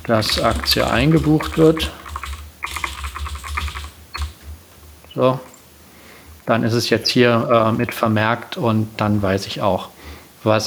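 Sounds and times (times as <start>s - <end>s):
typing a comment on a computer keyboard: 0.0s - 4.5s
speech: 0.1s - 2.0s, 5.2s - 5.5s, 6.5s - 10.6s.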